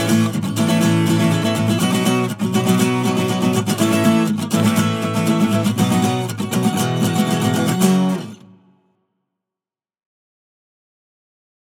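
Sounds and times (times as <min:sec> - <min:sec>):
acoustic music: 0:00.0 - 0:08.9.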